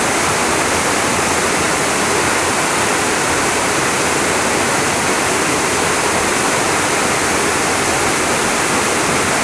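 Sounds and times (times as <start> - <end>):
waterfall: 0.0 - 9.4.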